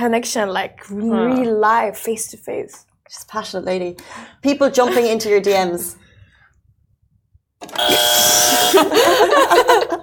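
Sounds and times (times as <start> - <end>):
speech: 0.0 - 6.0, 7.6 - 10.0
game buzzer sounding: 7.6 - 9.3
laughter: 8.5 - 10.0.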